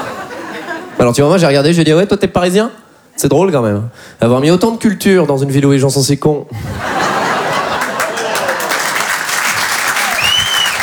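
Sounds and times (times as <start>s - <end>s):
laughter: 0.0s - 1.0s, 6.5s - 10.4s
speech: 1.0s - 7.1s
audience applause: 7.0s - 10.8s.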